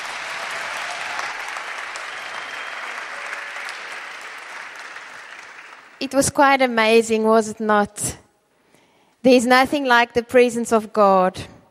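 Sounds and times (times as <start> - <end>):
audience applause for the band: 0.0 - 6.0
speech: 6.0 - 8.2, 9.2 - 11.5.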